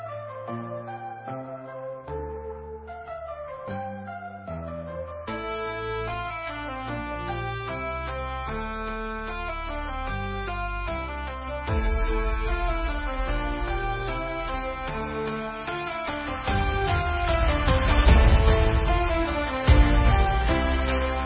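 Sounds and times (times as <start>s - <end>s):
magic battle music: 5.3s - 21.2s.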